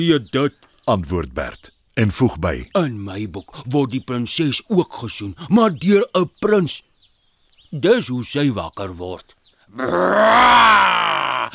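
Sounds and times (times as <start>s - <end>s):
speech: 0.0s - 6.9s, 7.7s - 11.5s
person doing a loud dinosaur roar with their voice: 9.8s - 11.5s.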